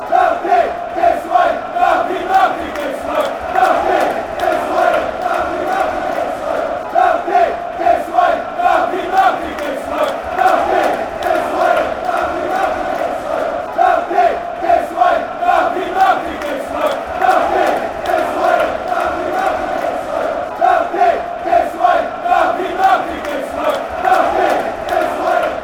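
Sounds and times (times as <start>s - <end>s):
fans chanting: 0.0s - 25.6s.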